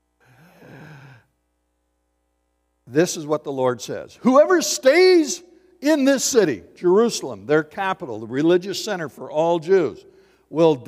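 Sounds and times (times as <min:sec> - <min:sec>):
deep breath during a sermon: 0:00.2 - 0:01.3, 0:10.1 - 0:10.5
speech: 0:02.9 - 0:10.8.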